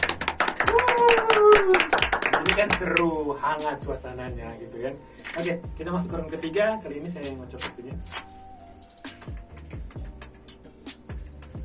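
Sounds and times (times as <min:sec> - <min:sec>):
hand clapping: 0:00.0 - 0:03.1, 0:09.1 - 0:11.6
speech: 0:02.6 - 0:08.3.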